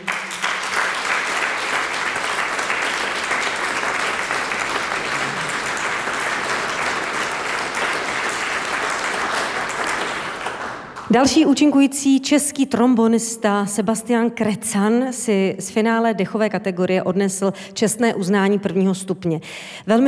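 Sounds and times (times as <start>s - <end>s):
audience applause: 0.0s - 11.1s
speech: 11.1s - 20.0s.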